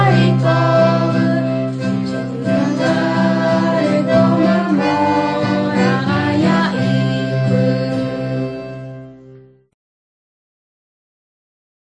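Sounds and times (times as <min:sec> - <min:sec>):
Guarani Mbya songs: 0:00.0 - 0:08.9.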